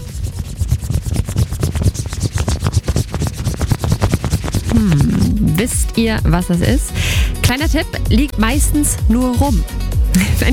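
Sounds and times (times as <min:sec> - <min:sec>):
coin rubbing across a surface: 0:00.0 - 0:05.8
speech: 0:05.6 - 0:10.5.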